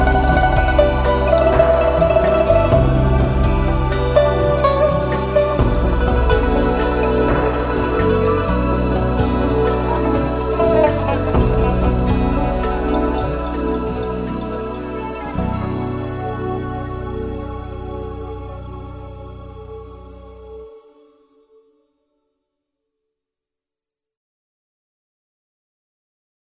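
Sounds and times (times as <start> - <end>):
instrumental music: 0.0 - 21.1.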